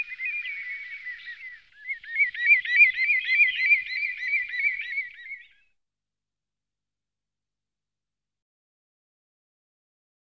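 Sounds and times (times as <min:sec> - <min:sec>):
common redshank giving sharp piping call notes: 0:00.0 - 0:05.7.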